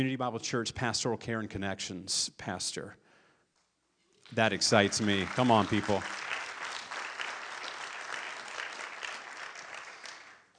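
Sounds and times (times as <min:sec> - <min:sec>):
speech: 0:00.0 - 0:03.0, 0:04.3 - 0:06.3
crowd applauding: 0:04.3 - 0:10.5.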